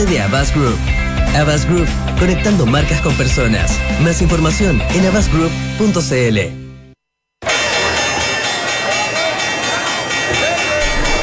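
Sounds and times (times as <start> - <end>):
speech: 0.0 - 6.6
bell ringing: 7.4 - 11.2.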